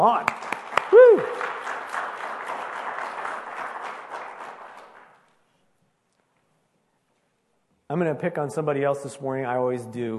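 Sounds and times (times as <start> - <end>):
audience applause: 0.0 - 5.3
speech: 8.0 - 10.1.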